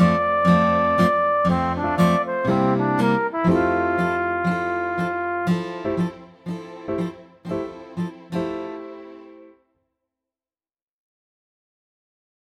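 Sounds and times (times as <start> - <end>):
solo flugelhorn: 0.0 - 6.2.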